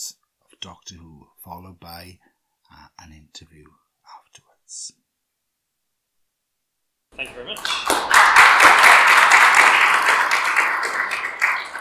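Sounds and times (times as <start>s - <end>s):
speech: 0.0s - 3.8s, 4.4s - 5.0s, 7.1s - 9.4s
crowd applause: 7.2s - 11.7s.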